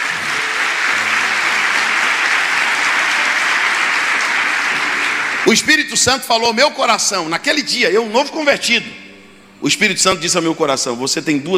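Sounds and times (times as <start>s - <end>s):
audience applause: 0.0s - 6.5s
speech: 5.5s - 9.0s, 9.6s - 11.5s.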